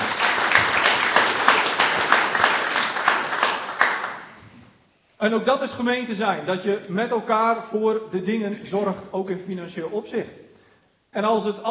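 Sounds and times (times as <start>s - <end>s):
applause: 0.0s - 4.4s
speech: 5.2s - 10.4s, 11.1s - 11.6s.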